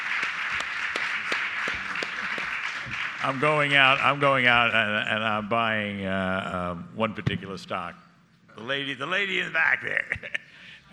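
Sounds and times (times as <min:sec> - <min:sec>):
audience applause: 0:00.0 - 0:04.4
speech: 0:03.2 - 0:10.9
laughter: 0:09.5 - 0:10.6.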